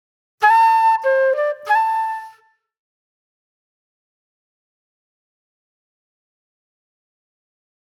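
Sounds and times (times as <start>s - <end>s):
reflective flute music: 0.4s - 2.6s.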